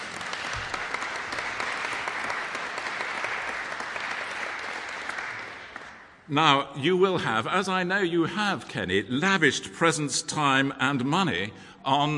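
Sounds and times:
round of applause: 0:00.0 - 0:06.3
speech: 0:06.3 - 0:12.1.

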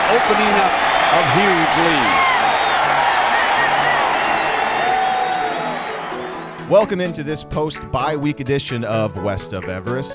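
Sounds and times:
stadium crowd cheering at the Rose Bowl punt return touchdown: 0:00.0 - 0:07.8
speech: 0:00.1 - 0:02.4, 0:06.7 - 0:10.1.

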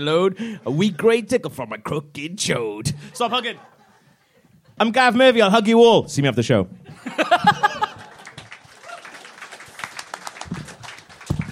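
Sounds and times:
speech: 0:00.0 - 0:03.8, 0:04.8 - 0:07.6
laughter: 0:03.1 - 0:04.8, 0:06.8 - 0:08.4
audience clapping: 0:07.7 - 0:11.5
cheering: 0:07.8 - 0:11.5.

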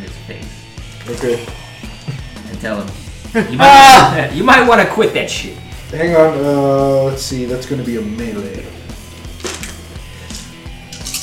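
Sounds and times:
speech: 0:00.3 - 0:01.6, 0:02.6 - 0:08.8
laughter: 0:03.3 - 0:04.5
dice clattering across a hard surface: 0:09.4 - 0:11.2.

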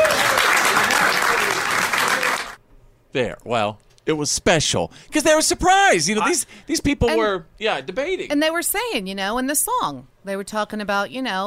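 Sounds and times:
crowd applause: 0:00.0 - 0:02.6
speech: 0:03.1 - 0:11.4.

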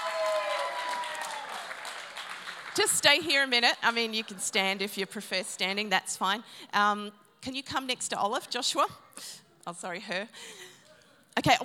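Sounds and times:
audience clapping: 0:00.0 - 0:03.7
speech: 0:02.8 - 0:10.7, 0:11.4 - 0:11.6.

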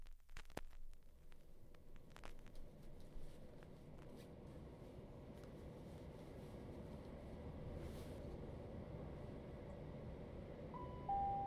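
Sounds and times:
train arriving at Pluckley station: 0:02.6 - 0:11.4.

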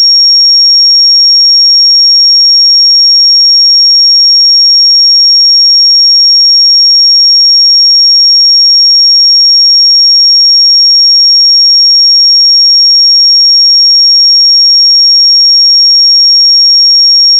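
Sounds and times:
5562 Hz pure sine tone: 0:00.0 - 0:17.3.

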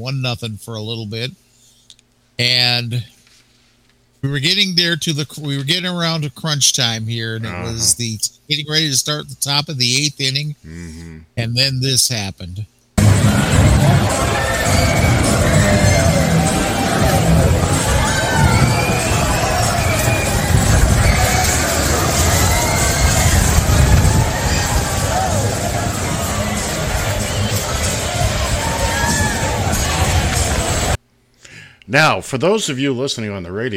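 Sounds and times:
speech: 0:00.0 - 0:01.4, 0:02.4 - 0:03.2, 0:04.2 - 0:15.0, 0:31.9 - 0:33.7
large stadium crowd roaring in reaction: 0:13.0 - 0:31.0.

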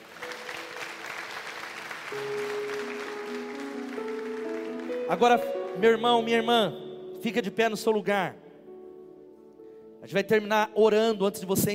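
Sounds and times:
audience applauding: 0:00.0 - 0:05.9
sustained organ or keyboard tones: 0:00.0 - 0:10.0
speech: 0:02.1 - 0:02.4, 0:05.1 - 0:08.4, 0:10.0 - 0:11.7.

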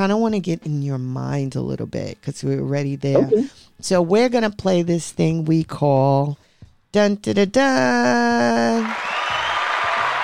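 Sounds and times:
speech: 0:00.0 - 0:09.0
applause: 0:08.2 - 0:10.2.

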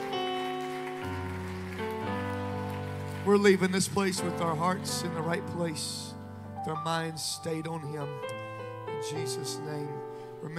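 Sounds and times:
audience clapping hands: 0:00.0 - 0:05.0
speech: 0:03.2 - 0:10.5.

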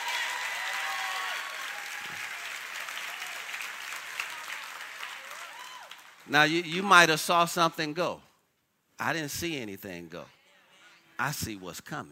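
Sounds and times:
crowd clapping: 0:00.0 - 0:06.8
speech: 0:06.3 - 0:08.3, 0:09.0 - 0:10.4, 0:11.2 - 0:12.1.

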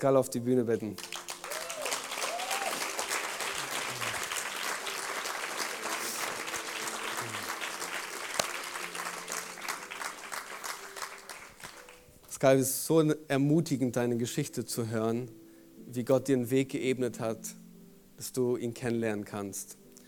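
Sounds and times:
speech: 0:00.0 - 0:01.4, 0:12.4 - 0:17.6, 0:18.2 - 0:19.8
audience applause: 0:01.0 - 0:12.0.

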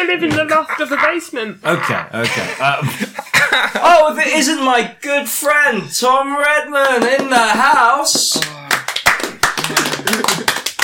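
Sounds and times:
speech: 0:00.0 - 0:08.6
laughter: 0:00.3 - 0:04.1, 0:09.6 - 0:10.7
people clapping to welcome a guest: 0:06.8 - 0:10.8.

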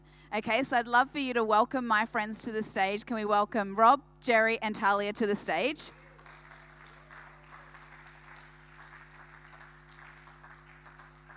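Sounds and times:
speech: 0:00.3 - 0:06.0
audience applause: 0:05.9 - 0:11.3.

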